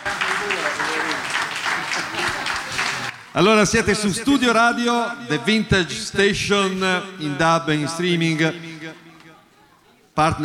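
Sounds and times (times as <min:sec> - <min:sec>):
audience applause: 0:00.0 - 0:03.5
speech: 0:03.4 - 0:09.0, 0:10.2 - 0:10.4.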